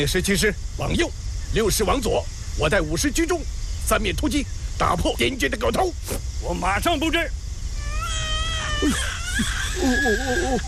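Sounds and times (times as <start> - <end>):
speech: 0.0 - 7.4, 8.1 - 10.6
baby crying: 7.8 - 10.6.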